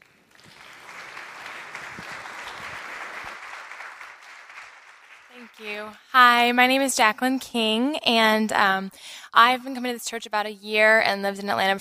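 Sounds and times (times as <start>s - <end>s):
audience applause: 0.0s - 5.9s
speech: 5.4s - 11.7s.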